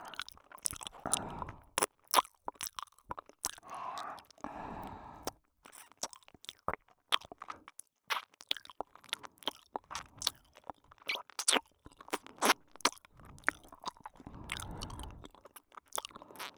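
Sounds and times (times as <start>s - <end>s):
ear licking sounds in the right ear: 0.0s - 16.5s.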